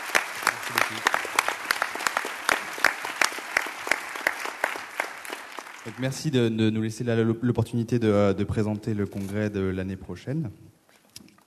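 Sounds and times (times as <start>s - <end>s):
audience applause: 0.0s - 6.6s
speech: 0.9s - 1.2s, 5.8s - 10.7s.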